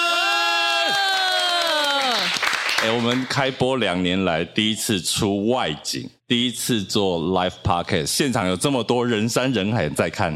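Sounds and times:
live audience cheering: 0.0 - 3.3
audience clapping: 0.8 - 3.4
speech: 2.8 - 10.3.

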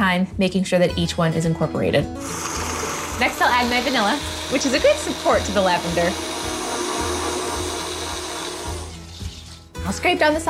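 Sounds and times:
speech: 0.1 - 6.3, 9.9 - 10.4
electric mixer on low speed mixing dough: 2.2 - 9.4.

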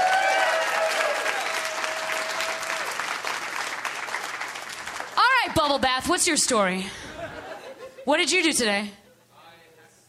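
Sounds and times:
audience applause: 0.0 - 5.5
speech: 5.6 - 7.2, 8.0 - 9.0
laughter: 6.9 - 8.2.

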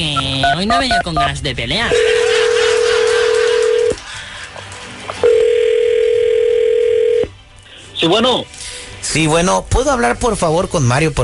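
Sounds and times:
speech: 0.0 - 2.3, 8.0 - 11.2
laughter: 1.9 - 4.8
telephone dial tone: 3.6 - 4.0, 5.2 - 7.3.

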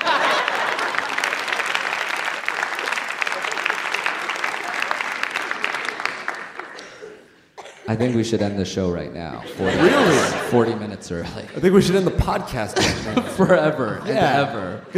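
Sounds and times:
audience applause: 0.0 - 7.3
laughter: 0.0 - 8.6, 9.3 - 14.9
speech: 7.9 - 14.9.

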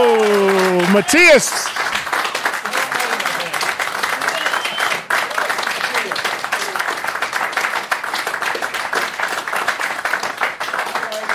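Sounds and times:
crowd applause for a band at a town hall event in New York City: 0.0 - 11.3
speech: 0.9 - 2.0.

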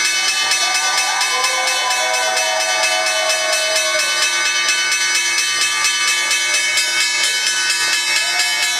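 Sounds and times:
stock exchange opening bell ringing: 0.0 - 8.7
faint cheering and whoops: 0.2 - 4.4, 8.1 - 8.7.

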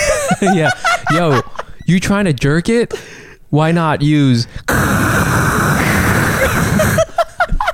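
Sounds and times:
laughter: 0.0 - 1.8, 6.4 - 7.7
speech: 0.4 - 5.1
white noise: 4.7 - 7.1.

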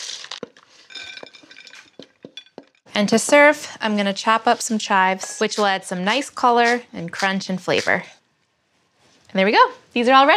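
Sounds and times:
stirring food coated in paprika mayo: 0.6 - 8.3
speech: 3.0 - 8.2, 9.3 - 10.3.

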